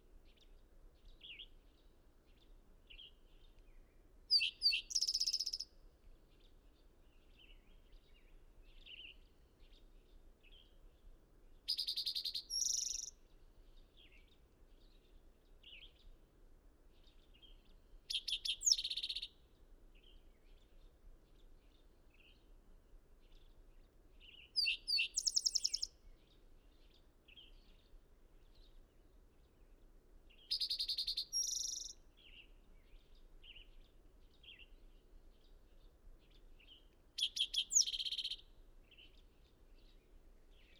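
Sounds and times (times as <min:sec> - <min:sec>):
constant soft background hiss: 0:00.0 - 0:40.7
bird song with chirps and fast trills: 0:04.3 - 0:05.7, 0:11.7 - 0:13.2, 0:17.1 - 0:19.3, 0:24.2 - 0:28.7, 0:30.4 - 0:34.8, 0:35.4 - 0:40.7.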